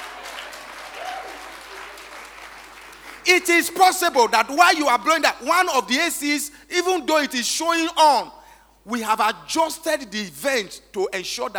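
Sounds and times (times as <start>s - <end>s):
audience clapping: 0.0s - 5.2s
speech: 3.3s - 11.5s.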